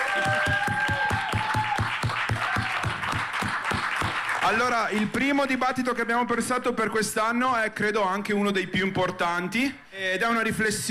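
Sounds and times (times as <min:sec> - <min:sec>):
audience applauding: 0:00.0 - 0:05.2
speech: 0:04.5 - 0:10.8.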